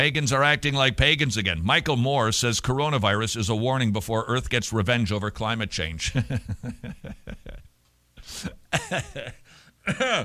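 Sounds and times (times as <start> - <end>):
speech: 0.0 - 7.2, 8.3 - 10.2
laughter: 6.1 - 7.7, 8.7 - 10.2
person clearing throat from a tickle in the throat: 8.4 - 10.2.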